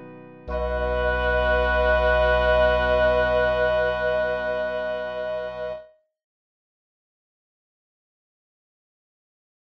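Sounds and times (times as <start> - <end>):
prelude music: 0.0 - 6.0.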